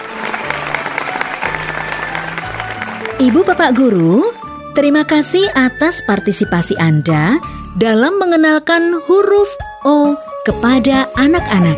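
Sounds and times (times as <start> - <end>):
applause: 0.0 - 4.7
speech: 3.2 - 11.7.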